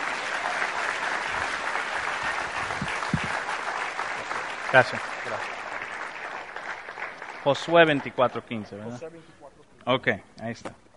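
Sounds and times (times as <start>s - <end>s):
audience applause: 0.0s - 8.8s
speech: 4.7s - 5.2s, 7.4s - 10.8s.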